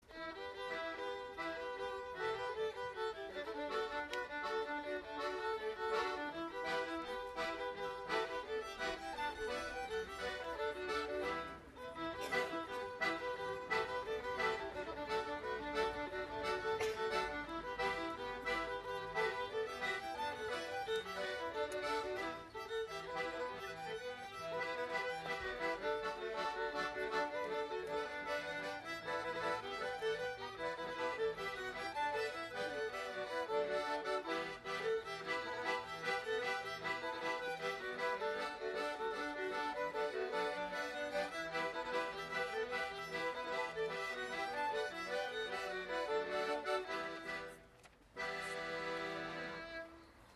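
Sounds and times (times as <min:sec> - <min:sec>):
folk group playing a reel: 0:00.0 - 0:50.3.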